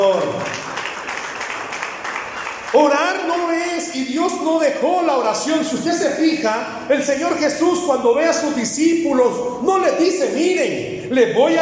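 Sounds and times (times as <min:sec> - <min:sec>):
audience applause: 0:00.0 - 0:03.4
speech: 0:03.9 - 0:11.6.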